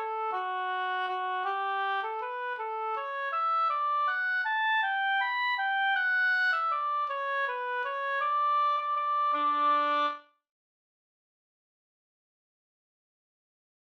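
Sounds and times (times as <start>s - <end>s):
bridal waltz music: 0.2s - 10.2s.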